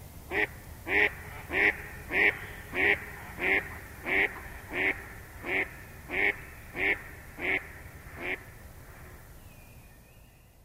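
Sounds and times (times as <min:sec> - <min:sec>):
quiet background hum: 0:00.0 - 0:10.6
Mallard quacking: 0:00.3 - 0:08.4.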